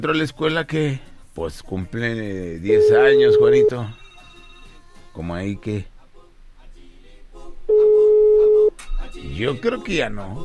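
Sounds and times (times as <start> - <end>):
speech: 0.0 - 4.0, 5.2 - 5.9, 9.2 - 10.4
telephone ringing: 2.7 - 4.9, 7.7 - 8.7.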